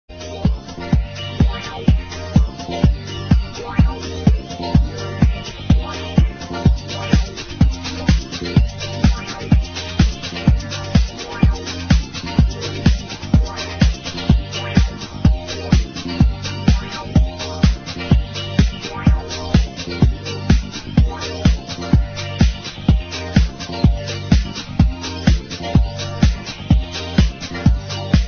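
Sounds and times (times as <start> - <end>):
electro music: 0.0 - 28.2.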